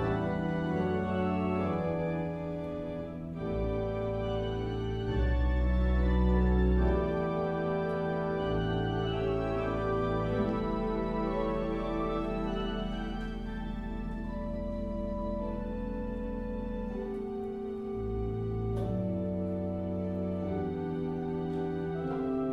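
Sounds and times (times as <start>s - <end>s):
jazz chorale: 0.0s - 22.5s.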